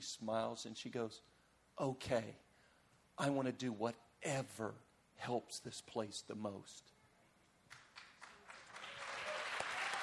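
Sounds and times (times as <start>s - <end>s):
speech: 0.0s - 2.5s, 3.2s - 7.0s
audience clapping: 7.7s - 10.0s.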